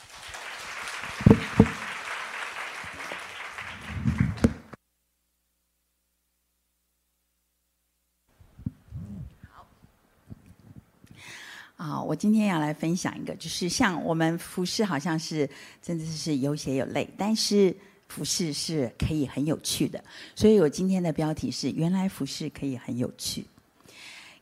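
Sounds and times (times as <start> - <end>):
audience applauding: 0.0 - 4.8
speech: 12.1 - 23.5.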